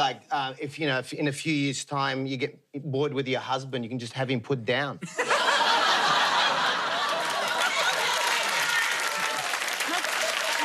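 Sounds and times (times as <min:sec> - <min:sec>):
speech: 0:00.0 - 0:05.5
laughter: 0:05.0 - 0:10.6
audience clapping: 0:06.6 - 0:10.6.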